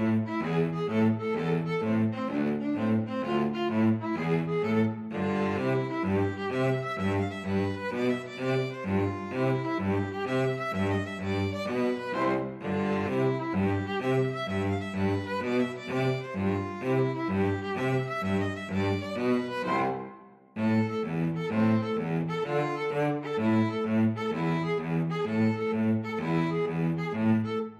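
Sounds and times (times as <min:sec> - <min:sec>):
two violins and cello playing a tarantella: 0:00.0 - 0:27.7.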